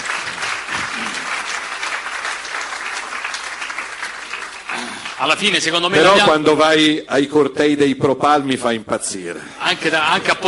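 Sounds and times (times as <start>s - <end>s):
audience applause: 0.0s - 6.3s
speech: 5.2s - 10.4s.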